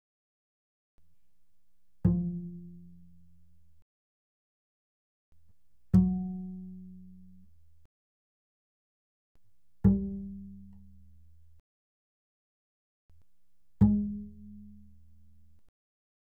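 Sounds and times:
double bass pizzicato fortissimo on the D string: 0:02.1 - 0:03.6, 0:06.0 - 0:07.6, 0:09.9 - 0:11.6, 0:13.8 - 0:15.6.

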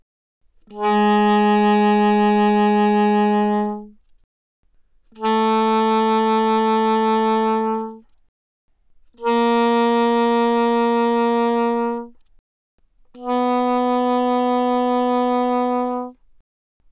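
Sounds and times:
soprano saxophone notes with vibrato: 0:00.6 - 0:04.0, 0:05.1 - 0:08.1, 0:09.1 - 0:12.2, 0:13.2 - 0:16.2.

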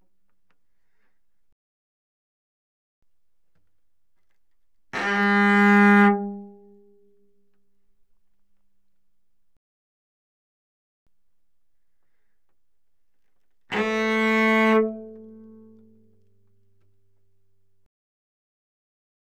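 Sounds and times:
cello bowed fortissimo on the D string: 0:05.0 - 0:06.8, 0:13.7 - 0:16.1.

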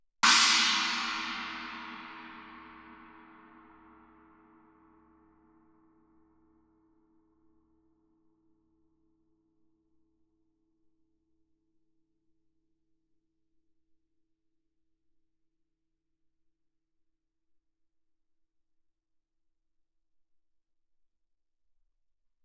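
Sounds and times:
Chinese stick on suspended cymbals played fortissimo: 0:00.2 - 0:04.2.

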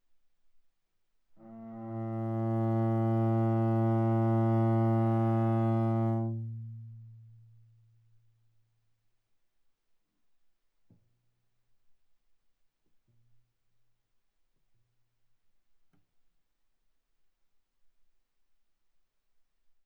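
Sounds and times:
viola bowed fortissimo on the G string: 0:01.4 - 0:06.4.

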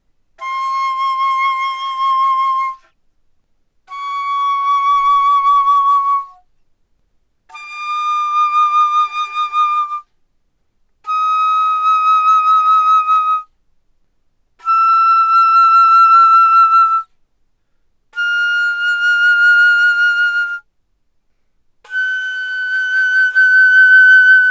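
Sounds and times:
alto flute playing fortissimo C6 to G6: 0:00.4 - 0:02.9, 0:03.9 - 0:06.4, 0:07.5 - 0:10.1, 0:11.1 - 0:13.5, 0:14.6 - 0:17.1, 0:18.2 - 0:20.7, 0:21.9 - 0:24.4.

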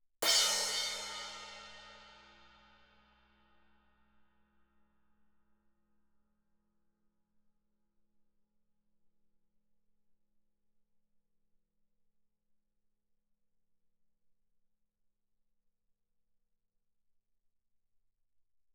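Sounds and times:
suspended cymbal crash hit with stick shoulder fortissimo: 0:00.2 - 0:02.7.

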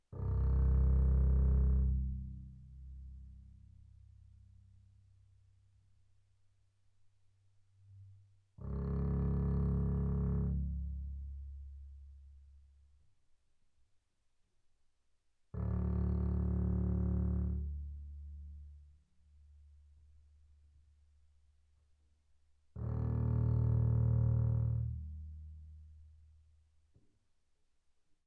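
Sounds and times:
double bass bowed arco sul C mezzo forte: 0:00.2 - 0:04.2, 0:07.8 - 0:12.4, 0:15.6 - 0:19.0, 0:22.8 - 0:25.9.

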